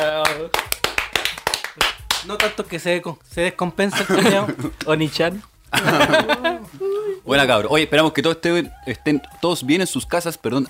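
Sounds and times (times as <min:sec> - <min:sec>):
hand claps: 0:00.0 - 0:02.8
speech: 0:02.2 - 0:10.6
laughter: 0:03.9 - 0:04.9, 0:05.7 - 0:06.9.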